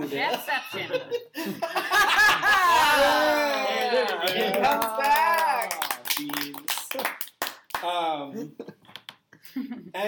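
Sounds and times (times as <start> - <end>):
speech: 0.0 - 1.8
laughter: 0.0 - 4.9
scattered hand claps: 3.5 - 7.9.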